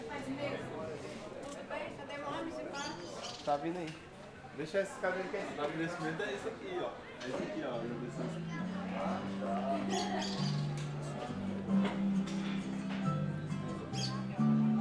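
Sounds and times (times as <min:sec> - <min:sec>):
murmur of voices at a fair: 0:00.0 - 0:14.7
music at a fair: 0:07.8 - 0:14.7.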